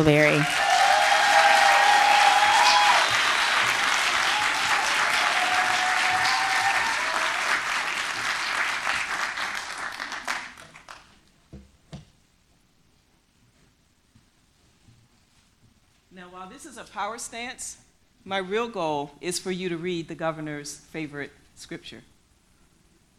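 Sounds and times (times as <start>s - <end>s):
speech: 0.0s - 0.6s, 17.0s - 22.1s
large crowd applauding: 0.0s - 11.2s
whistles and cheers: 0.4s - 9.0s.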